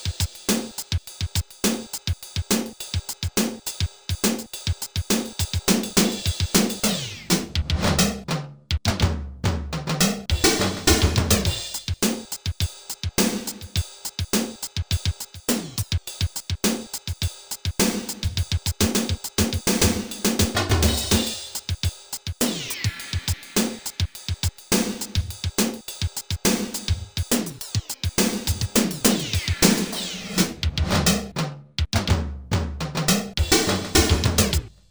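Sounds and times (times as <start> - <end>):
power drums song: 0.0 - 34.8.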